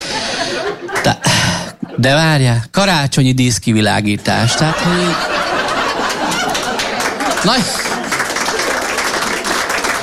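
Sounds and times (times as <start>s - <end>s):
laughter: 0.0s - 2.2s, 4.3s - 10.0s
speech: 0.7s - 1.3s, 2.0s - 5.5s, 7.4s - 7.8s
audience applause: 4.8s - 10.0s.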